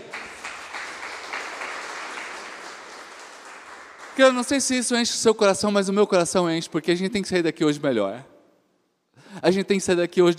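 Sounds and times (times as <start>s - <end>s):
audience applauding: 0.0s - 5.0s
speech: 4.2s - 8.3s, 9.4s - 10.3s.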